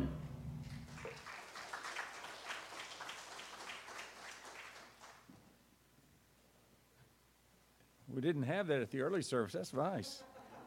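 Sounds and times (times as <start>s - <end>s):
audience applause: 0.6s - 5.3s
speech: 8.2s - 10.4s.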